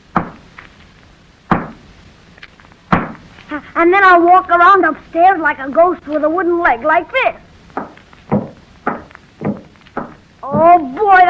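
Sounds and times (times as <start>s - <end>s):
hammer rapping on a wall: 1.5s - 1.8s, 7.8s - 10.8s
speech: 3.5s - 7.4s.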